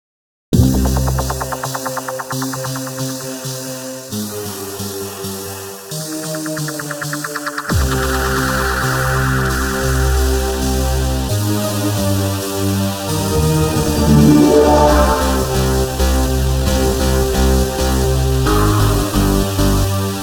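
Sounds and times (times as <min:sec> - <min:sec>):
breakbeat: 0:00.6 - 0:20.2.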